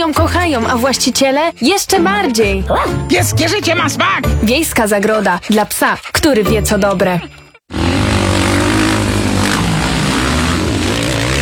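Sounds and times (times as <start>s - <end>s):
speech: 0.0s - 7.4s
speedway motorcycles racing: 7.7s - 11.4s.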